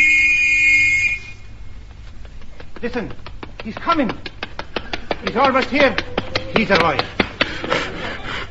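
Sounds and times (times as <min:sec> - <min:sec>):
whistle playing a note: 0:00.0 - 0:01.4
speech: 0:02.8 - 0:04.3, 0:05.2 - 0:07.8.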